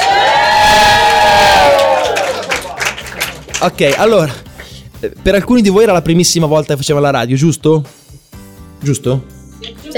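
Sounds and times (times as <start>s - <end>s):
group of young people cheering and shouting: 0.0s - 2.8s
speech: 3.6s - 4.4s, 5.0s - 8.0s, 8.8s - 9.9s.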